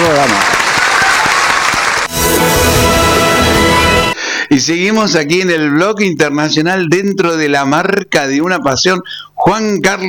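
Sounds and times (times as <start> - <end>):
audience applause: 0.0 - 4.2
speech: 4.5 - 10.0.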